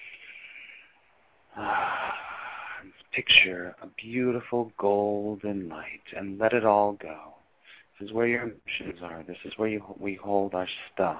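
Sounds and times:
deep breath in during a guided chakra meditation: 0.0s - 2.8s, 7.6s - 8.0s
speech: 3.2s - 7.4s, 8.0s - 11.1s.

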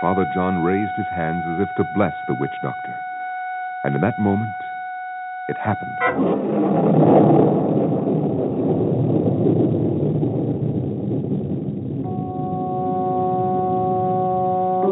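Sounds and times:
speech: 0.0s - 3.1s, 3.8s - 4.6s, 5.5s - 7.8s
thunderbolt crash: 5.7s - 14.8s.

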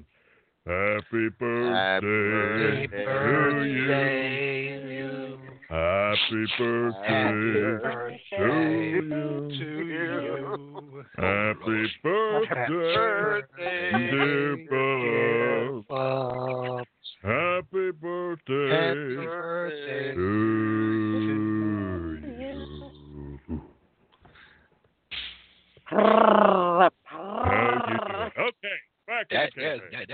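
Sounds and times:
group singing a birthday song off-key: 0.7s - 23.6s
speech: 1.2s - 4.4s, 5.8s - 14.4s
laughter: 6.2s - 17.4s, 26.1s - 29.9s.

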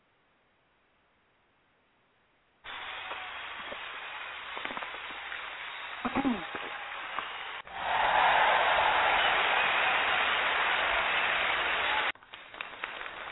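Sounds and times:
crowd applauding loudly: 2.7s - 13.3s
brief speech-like sounds: 6.0s - 6.5s.

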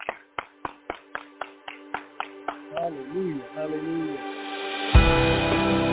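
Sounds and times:
hands clapping in church: 0.0s - 3.1s
speech: 2.9s - 5.8s.

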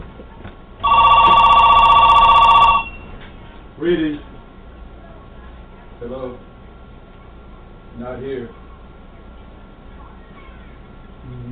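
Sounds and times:
telephone ringing: 0.8s - 3.2s
speech: 3.8s - 4.3s, 6.0s - 6.4s, 8.0s - 8.6s.

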